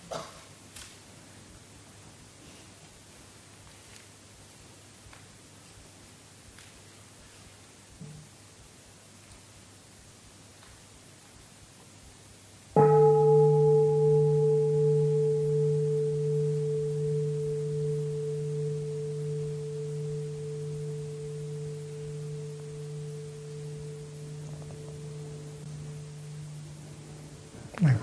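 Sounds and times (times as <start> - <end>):
Buddhist temple bell ringing: 12.8 - 28.0.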